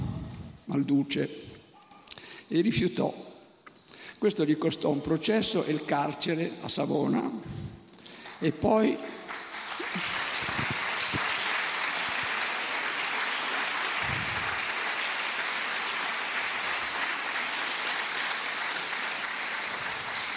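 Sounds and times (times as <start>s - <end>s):
speech: 0.7s - 1.5s, 2.5s - 3.3s, 4.2s - 7.6s, 8.4s - 9.2s, 10.0s - 10.2s
applause: 8.0s - 20.3s.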